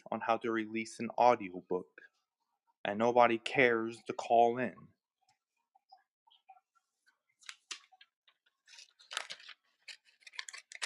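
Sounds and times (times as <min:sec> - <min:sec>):
speech: 0:00.1 - 0:02.1, 0:02.8 - 0:04.9
scissors snipping coupons from paper: 0:08.8 - 0:10.8.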